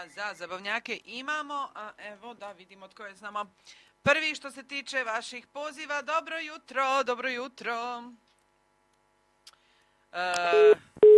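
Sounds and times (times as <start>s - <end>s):
speech: 0.0s - 8.3s, 10.1s - 10.9s
telephone busy signal after a dropped call: 10.5s - 11.1s.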